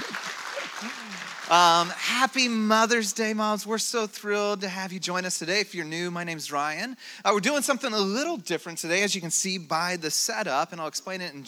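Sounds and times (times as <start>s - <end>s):
audience clapping: 0.0s - 2.3s
speech: 0.8s - 11.4s.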